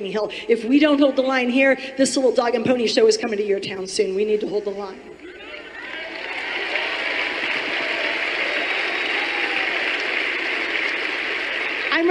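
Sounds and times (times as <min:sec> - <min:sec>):
speech: 0:00.0 - 0:05.1
audience clapping: 0:05.4 - 0:12.0.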